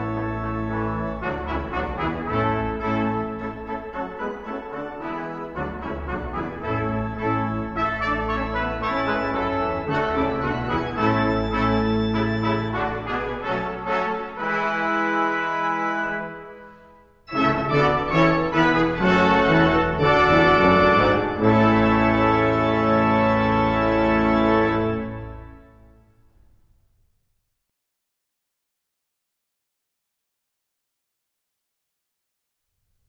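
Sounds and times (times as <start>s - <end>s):
brass ensemble playing a Christmas carol: 0.0s - 26.0s.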